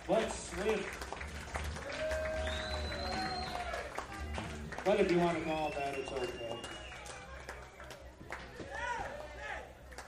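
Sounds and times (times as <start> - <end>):
crowd applauding: 0.0 - 10.0
speech: 0.6 - 1.0, 4.9 - 6.4
sustained gliding whistle-like tones: 2.4 - 3.7, 5.4 - 7.0.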